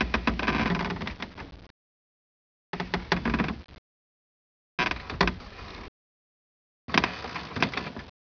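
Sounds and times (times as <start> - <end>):
wood creaking: 0.0 - 1.7, 2.8 - 3.8, 4.8 - 5.9, 6.9 - 8.1.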